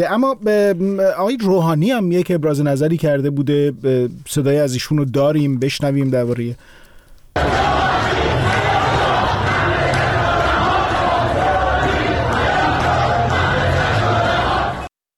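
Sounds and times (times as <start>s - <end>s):
speech: 0.0s - 6.8s, 7.4s - 7.9s
crowd of protesters chanting and shouting against Rouhani: 7.4s - 14.9s.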